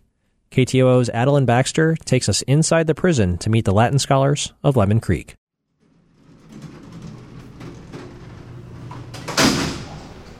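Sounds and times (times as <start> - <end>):
speech: 0.6 - 5.4
heavy metal prison door sliding along its track: 5.7 - 10.3.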